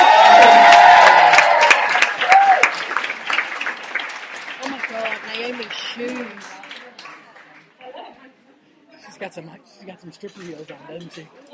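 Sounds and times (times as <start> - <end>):
audience applause and cheering welcoming event organisers onto a stage: 0.0 - 7.2
speech: 9.4 - 11.5.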